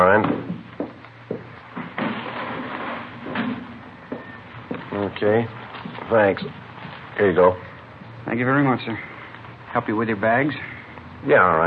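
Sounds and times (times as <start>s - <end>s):
wooden knocks and bumps of a window being opened: 0.1s - 4.9s
speech: 0.2s - 0.6s, 5.2s - 6.6s, 7.2s - 7.7s, 8.3s - 9.1s, 9.7s - 11.6s.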